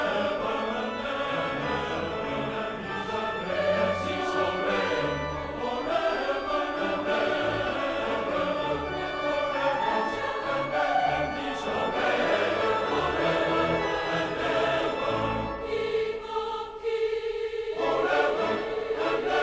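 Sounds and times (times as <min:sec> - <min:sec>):
choir singing: 0:00.0 - 0:19.4.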